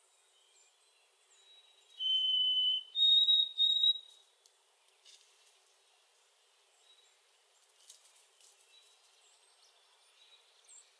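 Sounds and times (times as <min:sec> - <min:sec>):
White-throated Sparrow singing whistled song with stuttering notes: 0:01.4 - 0:04.1.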